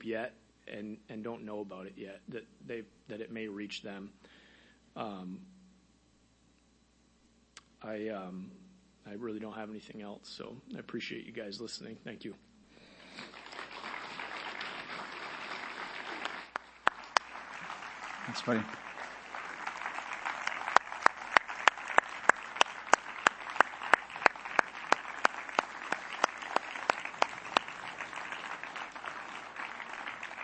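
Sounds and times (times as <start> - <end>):
speech: 0.0 - 4.4, 5.0 - 5.5, 7.8 - 12.4, 18.3 - 18.8
audience applause: 13.0 - 30.4.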